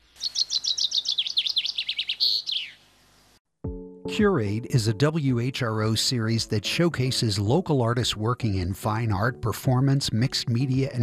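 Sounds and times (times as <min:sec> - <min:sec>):
storm petrel chirping calls: 0:00.0 - 0:02.9
speech: 0:04.2 - 0:11.0.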